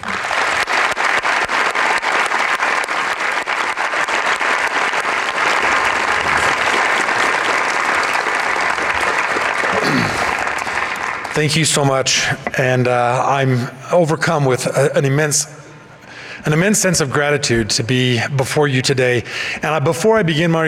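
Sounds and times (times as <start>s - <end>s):
audience applause welcoming a professor receiving a faculty honor: 0.0s - 12.2s
speech: 11.4s - 15.6s, 16.4s - 20.6s.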